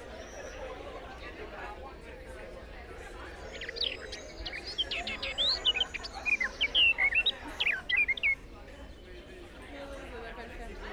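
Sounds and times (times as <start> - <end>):
birds chirping: 3.1 - 8.6.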